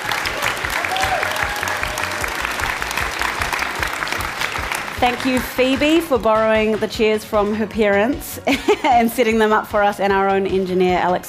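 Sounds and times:
live audience applauding: 0:00.0 - 0:06.1
speech: 0:05.0 - 0:11.2.

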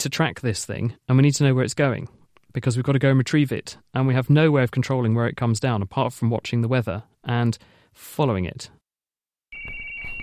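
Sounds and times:
speech: 0:00.0 - 0:08.8
radio receiver data transmission tones: 0:09.6 - 0:10.2.

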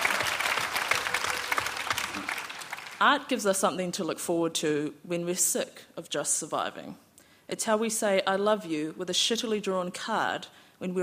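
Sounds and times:
audience clapping: 0:00.0 - 0:03.1
speech: 0:03.0 - 0:11.0.

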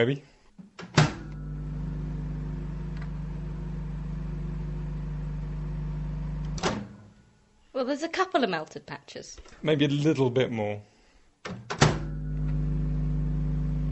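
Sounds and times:
speech: 0:00.0 - 0:00.3, 0:07.8 - 0:10.9
microwave clunk: 0:00.8 - 0:01.6, 0:06.5 - 0:07.1, 0:11.5 - 0:12.6
microwave oven humming: 0:01.0 - 0:07.1, 0:11.9 - 0:13.9.

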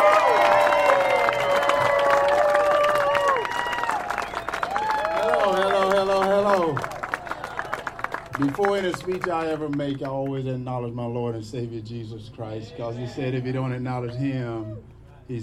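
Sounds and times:
rally crowd shouting and whooping: 0:00.0 - 0:08.2, 0:12.5 - 0:15.0
rally crowd clapping for a Georgia Senate candidate in Morgan County: 0:00.0 - 0:10.7
speech: 0:08.4 - 0:15.4.

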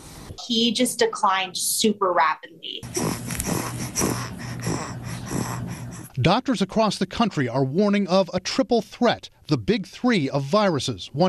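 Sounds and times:
speech: 0:00.4 - 0:04.1, 0:06.2 - 0:11.2
infant's labored wheezing breaths: 0:02.8 - 0:06.2.

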